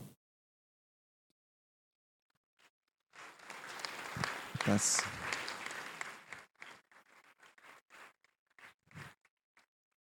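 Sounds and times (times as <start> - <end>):
applause: 3.1 - 9.7
speech: 4.7 - 5.3.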